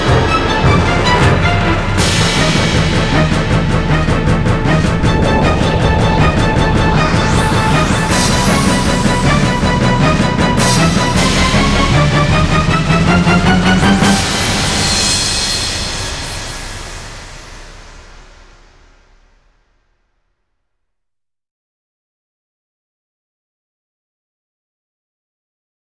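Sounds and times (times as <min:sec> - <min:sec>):
synthesizer: 0:00.0 - 0:18.5.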